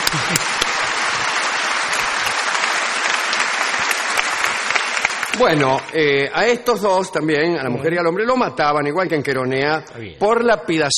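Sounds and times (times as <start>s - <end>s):
audience applause: 0.0s - 6.2s
speech: 5.4s - 10.9s.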